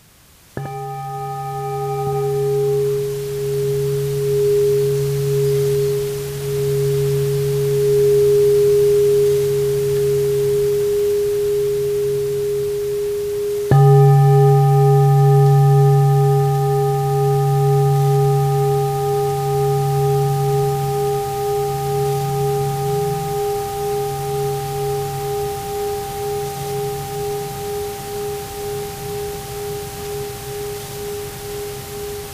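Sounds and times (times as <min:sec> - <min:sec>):
singing bowl ringing for sound meditation: 0:00.6 - 0:32.3.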